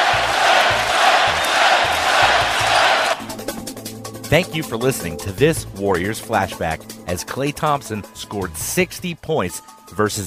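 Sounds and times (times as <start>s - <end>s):
arena crowd chanting a player's name: 0.0s - 3.2s
speech: 4.3s - 10.2s.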